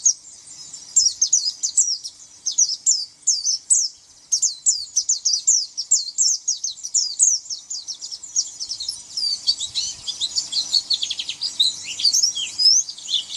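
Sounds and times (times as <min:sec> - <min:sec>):
white-eye chirping and twittering: 0:00.0 - 0:13.3.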